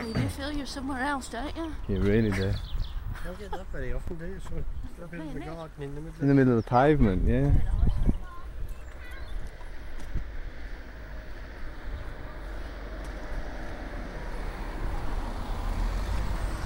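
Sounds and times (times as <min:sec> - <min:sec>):
road traffic passing in a street: 0:00.0 - 0:16.6
speech: 0:00.4 - 0:07.9.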